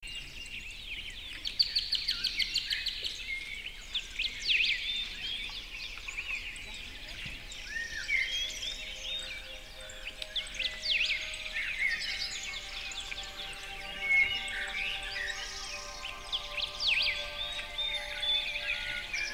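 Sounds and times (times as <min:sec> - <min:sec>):
tranquil birdsong: 0:00.0 - 0:19.3
music: 0:06.8 - 0:19.3.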